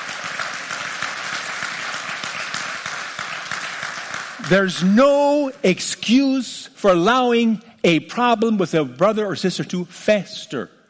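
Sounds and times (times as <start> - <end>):
audience clapping: 0.0 - 4.8
speech: 4.5 - 10.8.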